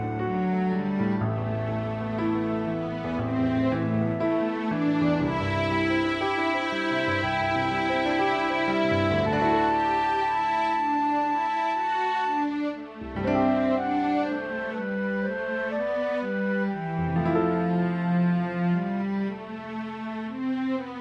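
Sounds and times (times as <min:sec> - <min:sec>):
piano trio with flute and cello: 0:00.0 - 0:20.9.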